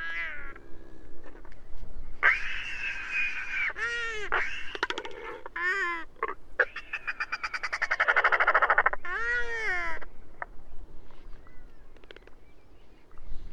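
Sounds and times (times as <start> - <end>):
Royal Albatrosses singing: 0.0 - 1.1, 2.2 - 10.6.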